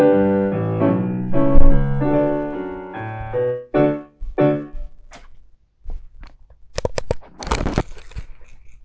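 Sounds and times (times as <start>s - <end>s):
musical accompaniment: 0.0s - 4.8s.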